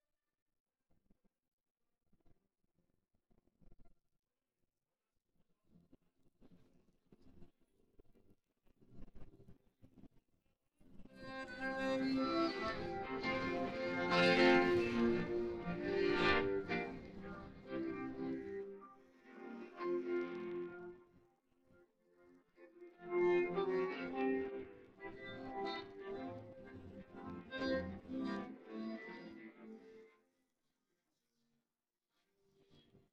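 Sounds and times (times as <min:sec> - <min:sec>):
guitar: 0:11.1 - 0:21.1, 0:22.6 - 0:30.2.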